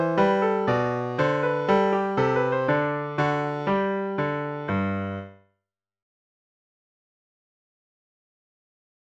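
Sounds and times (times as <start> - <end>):
piano: 0.0 - 5.6.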